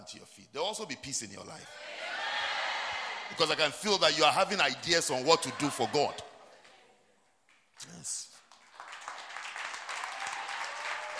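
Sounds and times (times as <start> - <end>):
speech: 0.1 - 2.2, 3.3 - 6.3, 7.8 - 8.3
church audience clapping: 5.4 - 11.1.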